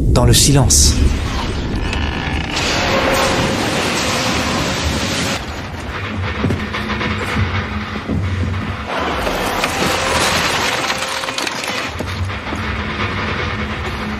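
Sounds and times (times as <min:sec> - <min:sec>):
speech: 0:00.2 - 0:01.2
steel ship hull grinding and scraping against ice: 0:01.7 - 0:14.1.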